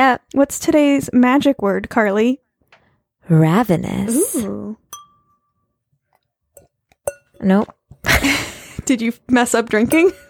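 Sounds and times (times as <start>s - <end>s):
speech: 0.0s - 2.4s, 3.3s - 4.8s, 7.4s - 10.2s
wine glasses clinking together in a toast: 4.2s - 5.5s, 6.6s - 7.7s, 9.9s - 10.2s.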